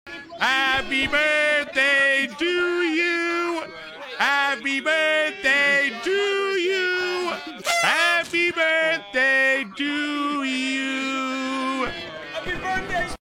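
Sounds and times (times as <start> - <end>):
person singing: 0.4 - 12.0.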